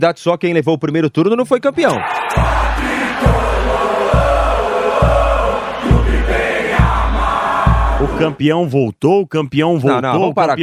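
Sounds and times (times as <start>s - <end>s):
speech: 0.0s - 3.4s, 8.2s - 10.6s
huge stadium crowd of football fans chanting in unison: 1.9s - 8.4s
deep regular thumps: 2.4s - 8.3s.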